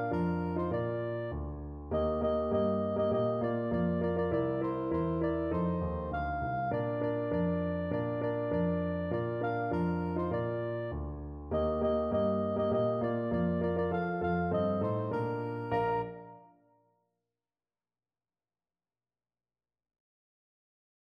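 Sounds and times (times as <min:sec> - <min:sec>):
soprano saxophone playing a Christmas song: 0:00.0 - 0:01.3, 0:02.0 - 0:10.9, 0:11.6 - 0:16.5.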